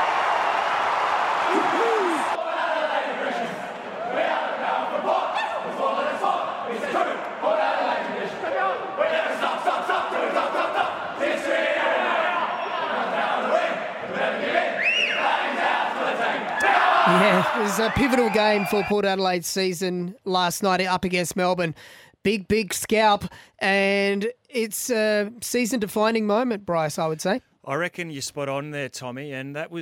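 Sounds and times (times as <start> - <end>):
huge football stadium crowd roaring and cheering: 0.0 - 19.0
whistles: 14.7 - 15.3
speech: 17.8 - 29.8.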